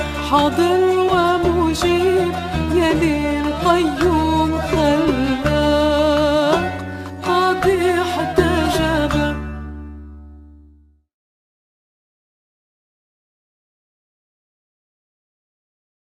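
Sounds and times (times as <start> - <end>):
Andalusian Arabic muwashshah song: 0.0 - 10.0.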